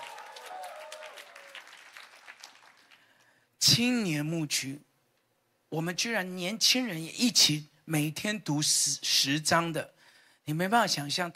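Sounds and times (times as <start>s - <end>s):
crowd clapping and cheering: 0.0s - 3.3s
speech: 3.7s - 4.9s, 5.7s - 11.3s.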